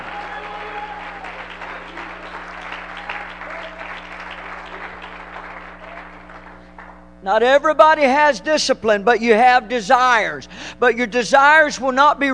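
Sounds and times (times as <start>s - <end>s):
audience clapping hands: 0.0s - 7.2s
speech: 7.2s - 12.3s.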